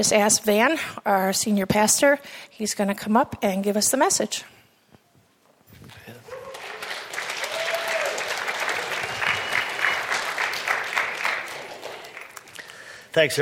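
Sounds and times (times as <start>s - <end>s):
speech: 0.0s - 4.6s, 13.2s - 13.4s
audience applauding and cheering: 6.2s - 12.9s.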